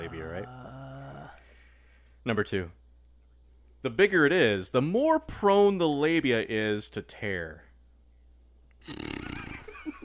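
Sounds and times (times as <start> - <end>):
speech: 0.0 - 0.8, 2.2 - 2.8, 3.8 - 7.6, 8.8 - 9.1
fart: 8.8 - 9.7.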